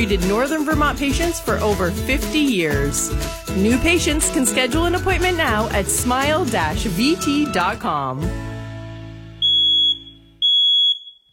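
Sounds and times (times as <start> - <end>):
speech: 0.0 - 8.5
smoke detector alarm beeping: 9.4 - 11.3.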